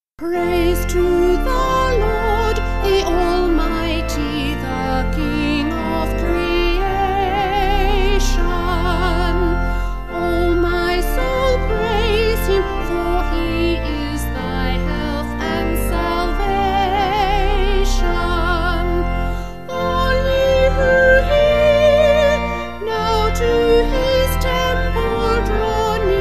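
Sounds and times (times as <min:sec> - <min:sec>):
vocal organ: 0:00.2 - 0:26.1.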